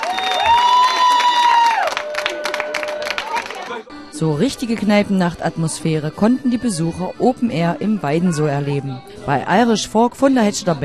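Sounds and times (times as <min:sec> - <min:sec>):
audience applause: 0:00.0 - 0:03.9
speech: 0:04.2 - 0:10.8.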